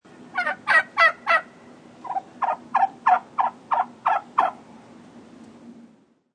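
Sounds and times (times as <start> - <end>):
turkey gobbling: 0.3 - 4.6.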